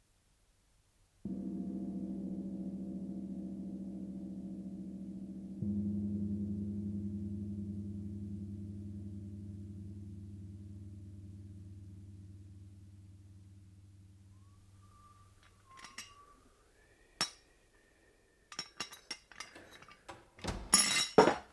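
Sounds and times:
low droning hum: 1.3s - 16.6s
coffee pot and cups clinking: 15.6s - 16.3s, 17.2s - 17.4s, 18.5s - 20.1s, 20.7s - 21.5s.

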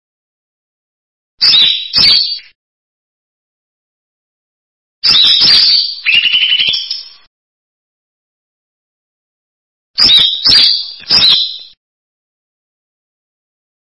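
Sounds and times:
bird song: 1.4s - 2.6s, 5.0s - 7.3s, 10.0s - 11.8s.

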